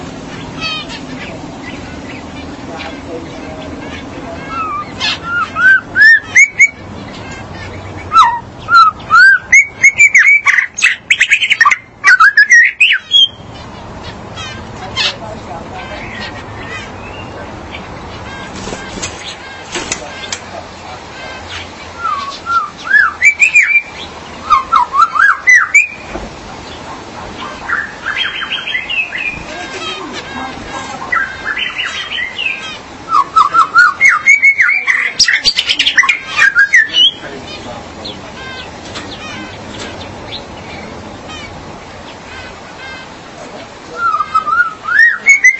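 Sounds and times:
magpie-robin or shama singing whistled phrases: 4.5s - 6.8s, 8.0s - 13.4s, 21.9s - 26.1s, 31.1s - 37.2s, 43.9s - 45.5s.

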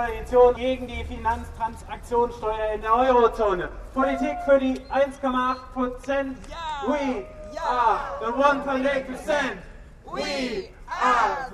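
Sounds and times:
speech: 0.0s - 11.5s
campaigner shouting through a megaphone at a satirical protest: 4.0s - 4.8s, 6.4s - 11.5s
protest crowd cheering: 6.5s - 8.7s.

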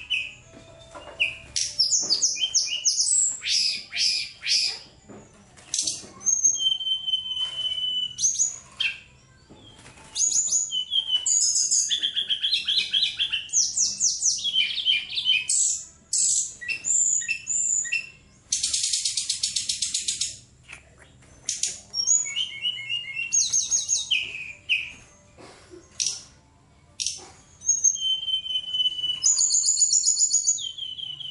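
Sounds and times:
bird song: 0.0s - 25.2s, 25.8s - 31.3s.

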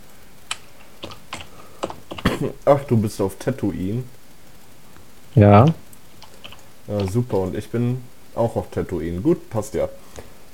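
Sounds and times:
low hiss: 0.0s - 10.5s
computer key or mouse clicks: 0.5s - 2.4s, 5.6s - 7.6s
speech: 2.4s - 4.2s, 5.4s - 5.8s, 6.9s - 10.3s.

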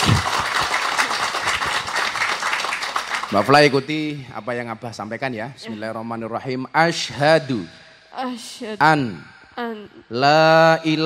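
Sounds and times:
audience applause: 0.0s - 3.9s
speech: 3.3s - 11.0s.

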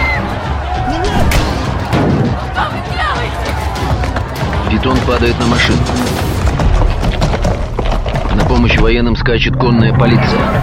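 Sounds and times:
crowd scuffle: 0.2s - 8.7s
speech: 4.8s - 6.2s, 8.4s - 10.6s.

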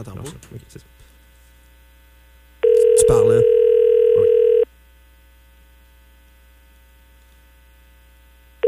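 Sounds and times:
speech: 0.0s - 1.1s, 3.1s - 3.6s
electronic ringback tone of an outgoing phone call: 2.6s - 4.7s.

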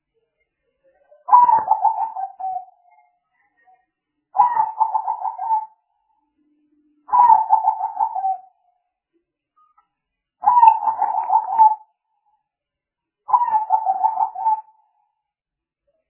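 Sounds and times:
spotted dove calling: 1.3s - 2.7s, 4.4s - 5.7s, 7.1s - 8.5s, 10.4s - 11.9s, 13.3s - 14.8s.

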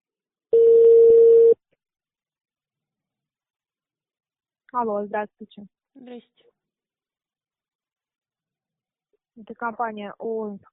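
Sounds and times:
telephone line tones while connecting to operator: 0.5s - 1.6s
speech: 4.8s - 6.5s, 9.4s - 10.7s.

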